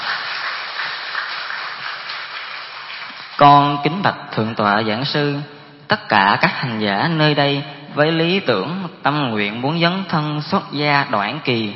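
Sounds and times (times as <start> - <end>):
audience applause welcoming a speaker: 0.0 - 3.4
speech: 3.4 - 11.7.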